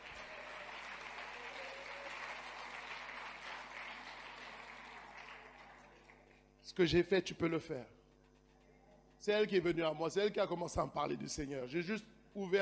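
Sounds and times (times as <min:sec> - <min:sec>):
audience applauding: 0:00.0 - 0:06.4
speech: 0:06.7 - 0:08.0, 0:09.2 - 0:12.6.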